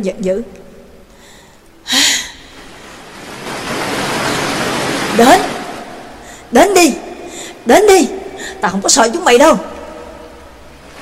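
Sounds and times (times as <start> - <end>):
speech: 0.0 - 0.6, 5.2 - 5.6, 6.5 - 7.0, 7.6 - 9.7
large ocean wave crashing: 2.6 - 6.6, 10.7 - 11.0
surf roar: 2.6 - 6.6, 10.4 - 11.0.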